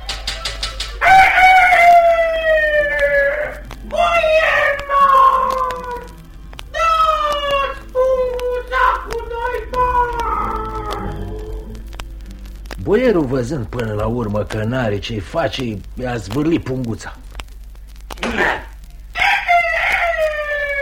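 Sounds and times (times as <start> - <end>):
rooster crowing: 0.0 - 11.7, 18.4 - 20.8
speech: 12.9 - 17.2.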